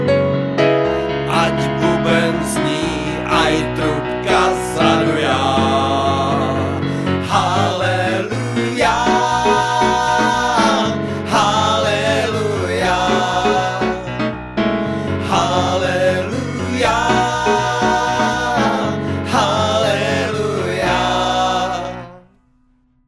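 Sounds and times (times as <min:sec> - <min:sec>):
piano: 0:00.0 - 0:23.0.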